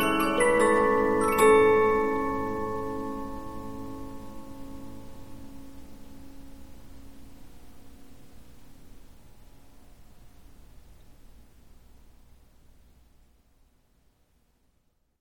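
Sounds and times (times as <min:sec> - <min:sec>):
Polyphon 15-inch disc music box playing: 0:00.0 - 0:04.9.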